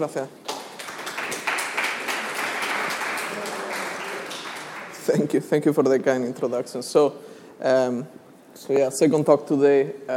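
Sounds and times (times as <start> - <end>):
speech: 0.0 - 0.5, 5.0 - 10.1
audience applause: 0.5 - 5.5.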